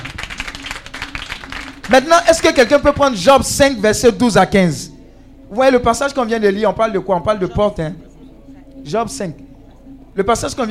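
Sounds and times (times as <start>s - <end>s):
audience applauding: 0.0s - 2.5s
speech: 1.9s - 4.9s, 5.5s - 8.1s, 8.8s - 9.4s, 10.2s - 10.6s.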